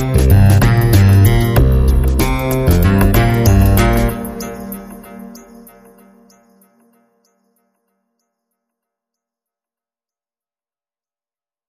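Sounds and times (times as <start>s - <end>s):
British bass line: 0.0s - 5.0s.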